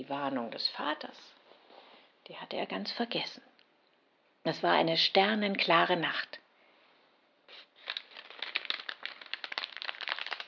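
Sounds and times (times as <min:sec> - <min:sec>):
speech: 0:00.0 - 0:01.4, 0:02.2 - 0:03.5, 0:04.4 - 0:06.4
campfire crackling: 0:07.8 - 0:10.4.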